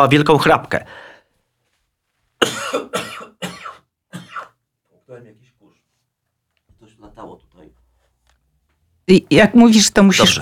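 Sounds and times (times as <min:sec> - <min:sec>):
speech: 0:00.0 - 0:01.1, 0:09.1 - 0:10.4
coughing fit: 0:02.4 - 0:04.6.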